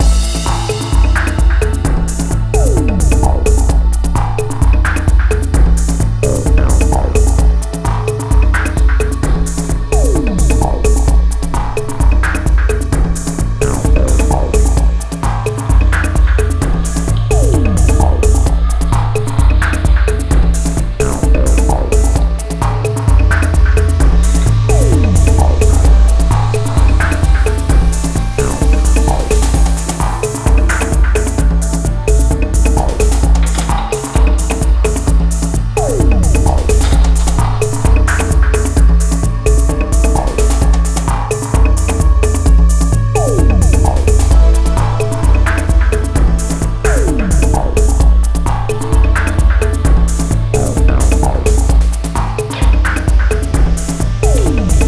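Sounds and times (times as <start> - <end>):
setup screen music loop: 0.0 - 54.8.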